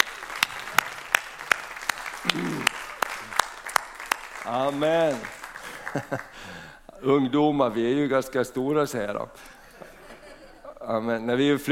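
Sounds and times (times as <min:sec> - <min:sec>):
audience applause: 0:00.0 - 0:06.7
speech: 0:04.5 - 0:09.6, 0:10.9 - 0:11.7
laughter: 0:05.6 - 0:06.4, 0:09.6 - 0:10.9.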